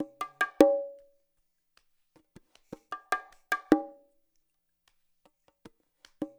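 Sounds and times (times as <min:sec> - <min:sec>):
percussion loop: 0:00.0 - 0:01.1, 0:02.7 - 0:04.0.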